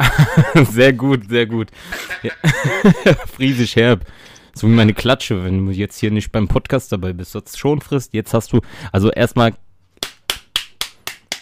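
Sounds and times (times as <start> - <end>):
laughter: 0.0 - 0.8, 1.8 - 3.6
speech: 0.6 - 9.6
hand clap: 10.0 - 11.4.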